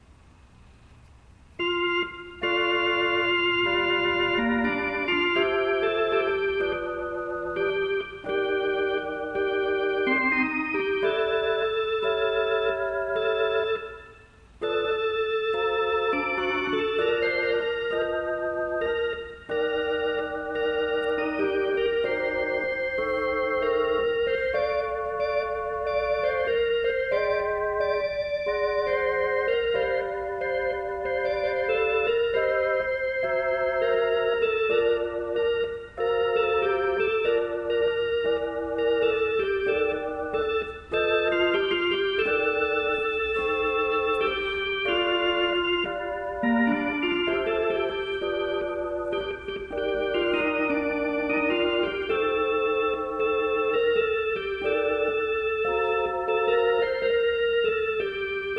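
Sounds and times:
old valve Hammond organ playing: 1.5 - 58.5.

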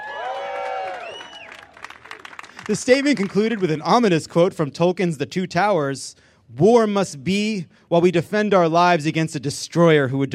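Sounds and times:
audience cheering: 0.0 - 3.9
speech: 2.7 - 10.3.

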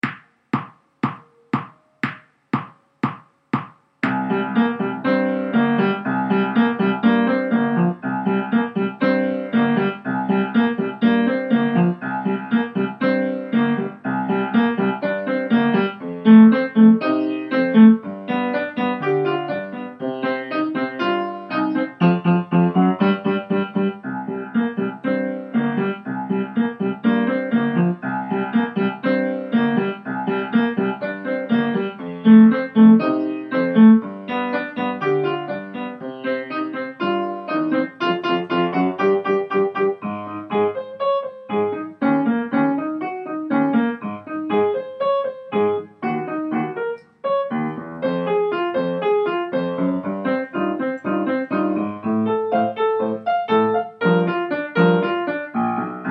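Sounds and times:
circus rock piano: 0.0 - 56.0.

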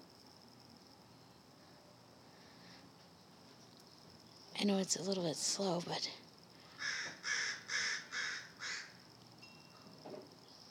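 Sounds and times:
speech: 4.6 - 6.2
baby crows calling from a nest: 6.7 - 9.0.

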